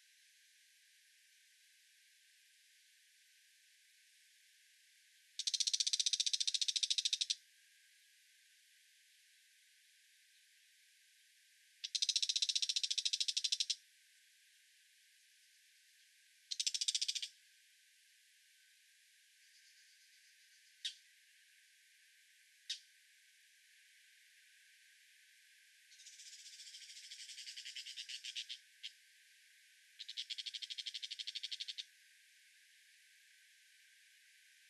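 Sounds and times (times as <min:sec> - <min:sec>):
brown shrike: 0:05.4 - 0:07.4, 0:11.8 - 0:13.8, 0:16.5 - 0:17.4, 0:19.4 - 0:21.1, 0:25.9 - 0:29.0, 0:30.0 - 0:31.9.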